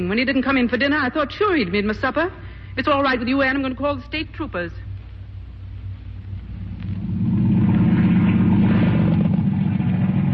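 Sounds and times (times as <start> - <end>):
speech: 0.0 - 4.9
boat engine running: 5.8 - 10.3.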